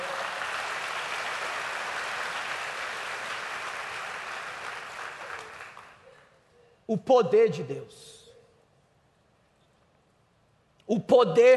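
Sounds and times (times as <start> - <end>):
audience applauding: 0.0 - 6.0
speech: 6.9 - 8.2, 10.9 - 11.5.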